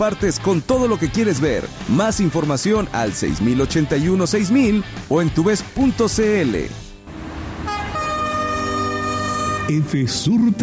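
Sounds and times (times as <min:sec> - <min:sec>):
speech: 0:00.0 - 0:06.8, 0:09.7 - 0:10.6
passing train rumble: 0:07.1 - 0:09.7
train horn blast in a railway safety advert: 0:07.6 - 0:09.9.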